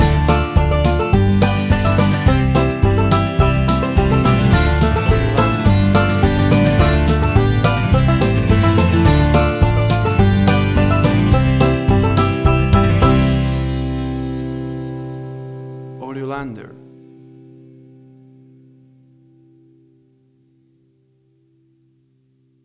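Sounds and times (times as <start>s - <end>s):
banjo mood music mix: 0.0s - 17.6s.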